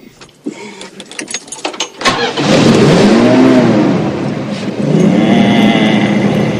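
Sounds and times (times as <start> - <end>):
old car engine starting, revving and idling: 2.0 - 6.5.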